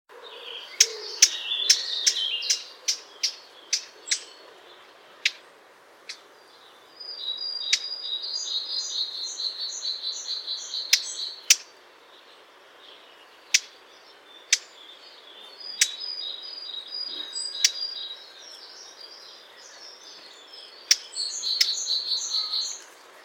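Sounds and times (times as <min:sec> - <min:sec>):
other birds twittering: 0:00.1 - 0:23.2
Eurasian blackcap tac calls: 0:00.8 - 0:04.3, 0:10.8 - 0:11.7, 0:13.5 - 0:13.8, 0:15.7 - 0:16.0, 0:20.8 - 0:21.9.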